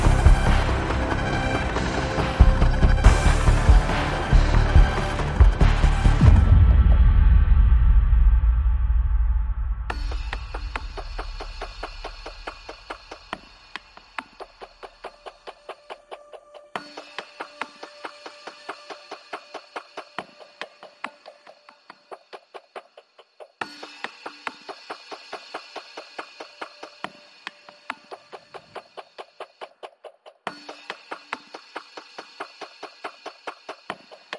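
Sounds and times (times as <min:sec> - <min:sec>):
bass: 0:00.0 - 0:11.0
drums: 0:00.0 - 0:34.3.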